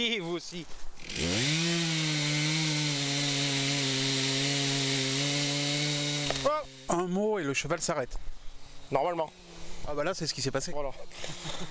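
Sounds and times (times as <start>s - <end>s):
speech: 0.0s - 1.8s, 6.4s - 11.6s
chainsaw running, cutting wood: 1.0s - 7.1s, 11.2s - 11.6s.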